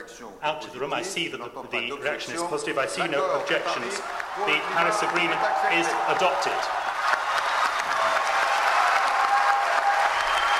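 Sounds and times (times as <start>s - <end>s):
speech: 0.2s - 6.9s
conference hall audience applause: 3.0s - 10.5s.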